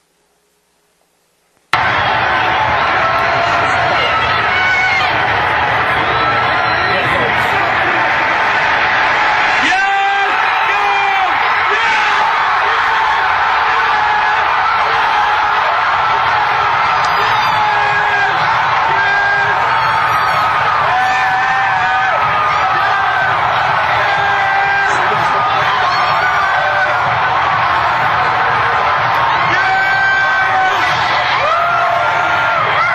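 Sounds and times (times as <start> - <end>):
stadium crowd cheering after final play: 1.7 - 32.9.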